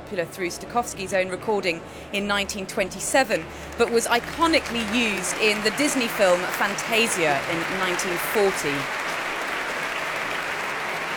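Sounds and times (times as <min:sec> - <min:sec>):
speech: 0:00.1 - 0:09.0
concert applause for an orchestra at the BBC Proms: 0:03.6 - 0:11.1.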